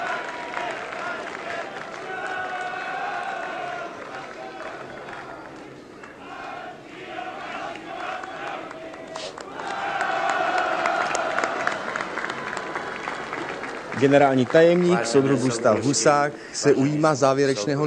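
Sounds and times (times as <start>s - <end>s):
huge crowd chanting at a May Day demonstration on Letná plain in Prague: 0.0s - 12.5s
crowd applause at a May Day demonstration on Letná plain in Prague: 0.0s - 16.3s
speech: 14.0s - 17.8s.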